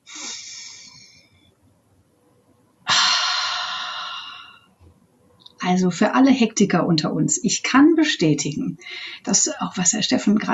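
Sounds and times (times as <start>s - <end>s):
person taking deep deliberate breaths: 0.0s - 1.2s, 2.9s - 4.6s
speech: 5.6s - 10.5s.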